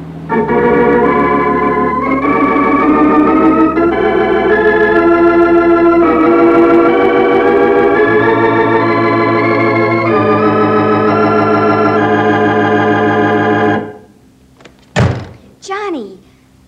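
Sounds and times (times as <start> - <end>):
organ-like music: 0.0 - 14.2
door slamming shut: 14.6 - 15.5
person speaking: 15.3 - 16.3.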